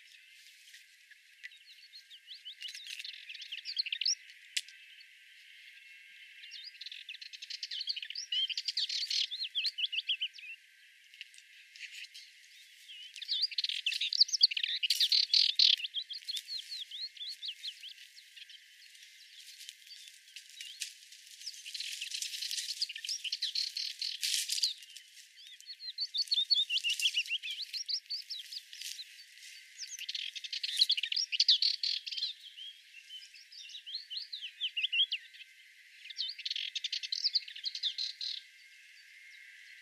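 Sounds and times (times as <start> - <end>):
Sardinian warbler singing: 0.0 - 39.8.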